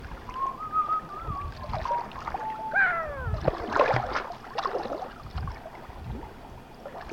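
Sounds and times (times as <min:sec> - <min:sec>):
creek: 0:00.0 - 0:07.1.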